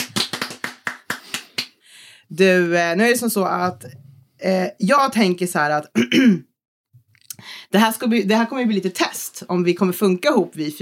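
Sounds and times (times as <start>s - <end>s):
crisp hand claps: 0.0s - 1.8s
speech: 2.3s - 6.5s, 7.7s - 10.8s.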